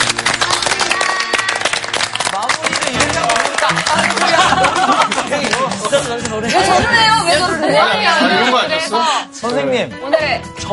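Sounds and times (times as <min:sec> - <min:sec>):
audience applause: 0:00.0 - 0:06.4
laughter: 0:02.9 - 0:08.8
speech: 0:07.7 - 0:10.7.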